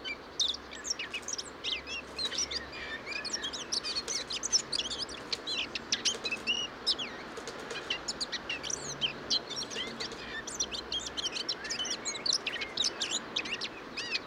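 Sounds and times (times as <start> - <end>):
Eurasian blackcap warbling song: 0.0 - 14.2.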